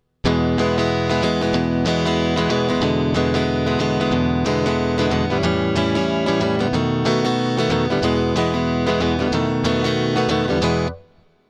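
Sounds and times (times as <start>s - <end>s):
blues prog music: 0.2s - 11.2s.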